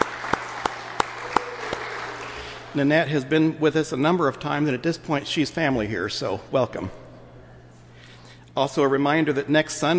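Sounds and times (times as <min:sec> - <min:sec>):
church congregation applauding the organist: 0:00.0 - 0:02.8
speech: 0:02.8 - 0:07.0, 0:08.6 - 0:09.9.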